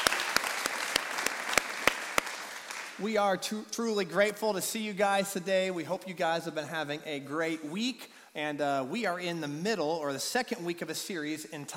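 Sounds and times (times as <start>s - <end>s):
church congregation clapping to welcome first-time visitors: 0.0s - 3.0s
speech: 3.0s - 11.7s.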